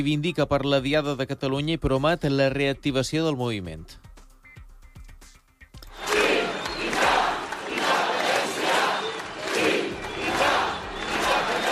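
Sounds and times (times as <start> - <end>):
speech: 0.0 - 4.0
crowd chanting at street demonstration in Barcelona: 5.9 - 11.7.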